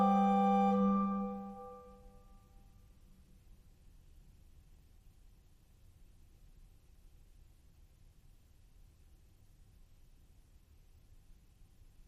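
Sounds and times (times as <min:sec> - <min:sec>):
organ on two manuals and pedal: 0:00.0 - 0:01.8.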